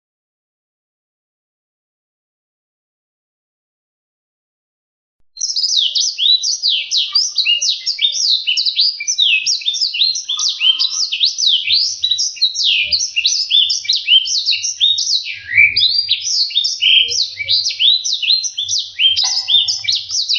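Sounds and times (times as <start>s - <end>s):
black-throated seedeater singing a long rapid warble: 5.4s - 20.3s.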